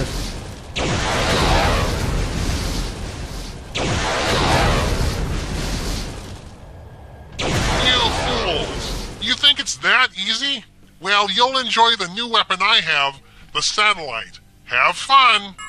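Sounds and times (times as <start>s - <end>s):
nuclear explosions in a video game: 0.0s - 10.1s
speech: 10.0s - 15.6s.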